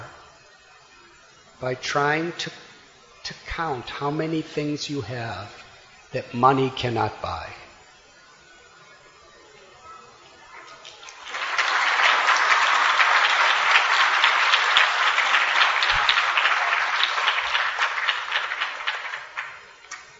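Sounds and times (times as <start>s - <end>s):
speech: 1.6s - 2.6s, 3.6s - 7.7s
audience clapping: 10.7s - 20.1s.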